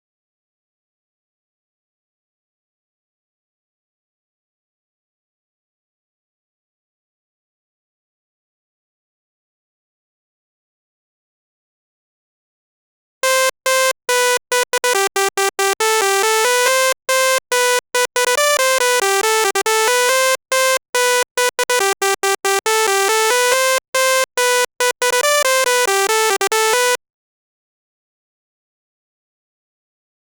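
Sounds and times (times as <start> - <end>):
dry melody at 140 BPM without sidechain: 13.2 - 27.0.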